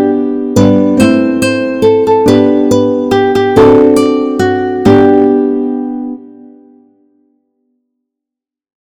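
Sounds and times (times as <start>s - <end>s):
guitar playing: 0.0s - 7.1s.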